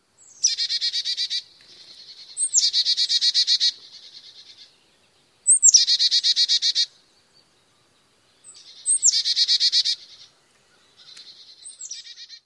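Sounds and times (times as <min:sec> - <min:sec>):
calls: 0:00.3 - 0:04.7, 0:05.5 - 0:07.0, 0:08.4 - 0:12.4.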